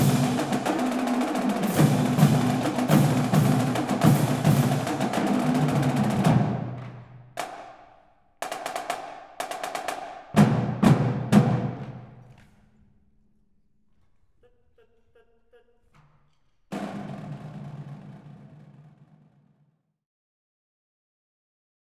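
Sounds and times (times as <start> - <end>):
marching band playing: 0.0 - 7.6, 8.5 - 12.2.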